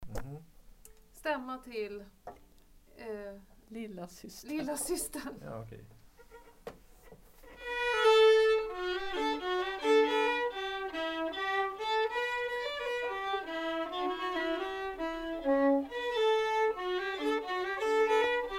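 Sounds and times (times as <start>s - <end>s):
Swedish fiddle tune: 7.4s - 18.5s.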